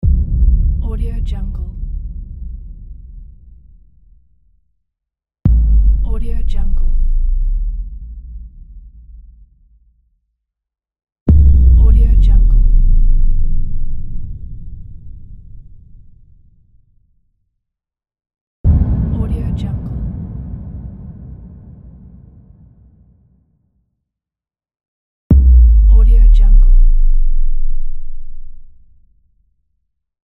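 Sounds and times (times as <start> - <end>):
boom: 0.0 - 4.2, 5.5 - 10.0, 11.3 - 16.0, 18.6 - 23.5, 25.3 - 28.8.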